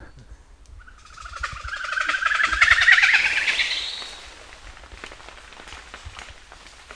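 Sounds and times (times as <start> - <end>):
Presbytis comata calls: 0.9 - 4.2.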